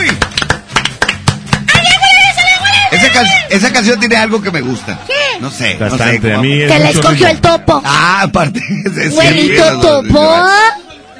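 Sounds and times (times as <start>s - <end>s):
hands clapping: 0.0s - 5.0s
speech: 3.2s - 10.9s
laughter: 8.4s - 9.8s.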